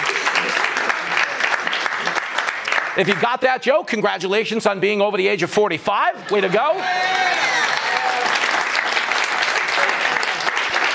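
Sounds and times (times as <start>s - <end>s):
crowd clapping: 0.0s - 3.6s, 6.2s - 10.9s
speech: 3.0s - 7.6s
whoops and voices: 6.7s - 8.3s.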